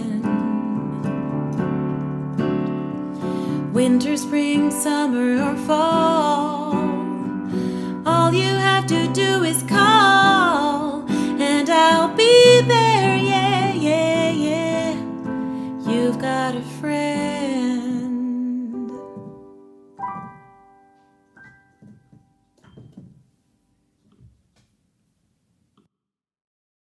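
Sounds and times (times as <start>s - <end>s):
singing with piano: 0.0s - 2.2s, 3.1s - 20.6s.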